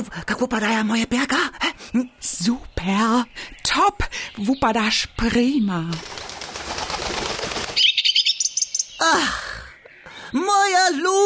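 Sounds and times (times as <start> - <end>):
speech: 0.0 - 6.2, 9.1 - 9.4, 10.3 - 11.2
bird chirping: 1.6 - 11.2
bird flying in with wings flapping: 5.9 - 8.0.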